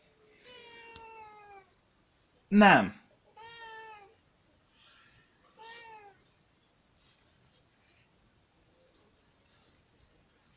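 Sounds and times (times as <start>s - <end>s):
cat meowing: 0.4s - 1.7s, 3.3s - 4.2s, 5.5s - 6.2s
speech: 2.5s - 3.0s.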